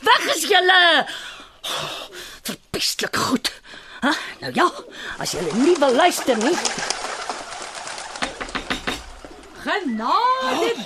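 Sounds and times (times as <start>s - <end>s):
hiss: 0.0s - 10.8s
speech: 0.1s - 7.0s, 9.6s - 10.8s
doves cooing: 4.8s - 10.8s.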